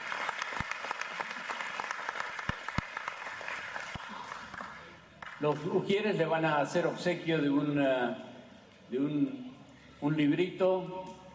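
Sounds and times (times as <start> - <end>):
audience applause: 0.0 - 5.4
speech: 5.4 - 8.3, 8.9 - 9.4, 10.0 - 11.1.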